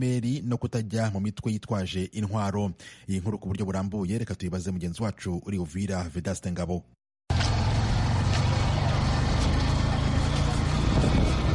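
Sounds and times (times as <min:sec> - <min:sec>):
speech: 0:00.0 - 0:07.0
motorcycle taxi engines rumbling at a crowded parking area in Uvira town: 0:07.3 - 0:11.5.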